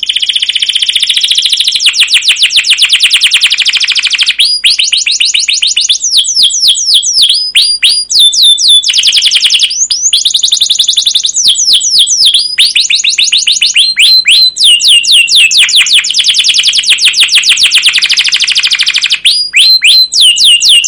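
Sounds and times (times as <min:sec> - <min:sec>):
canary song: 0:00.0 - 0:20.8.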